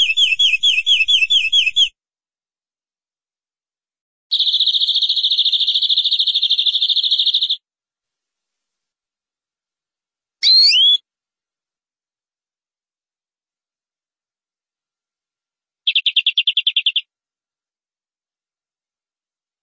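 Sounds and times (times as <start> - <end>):
canary song: 0.0 - 1.9, 4.3 - 7.6, 10.4 - 11.0, 15.9 - 17.0.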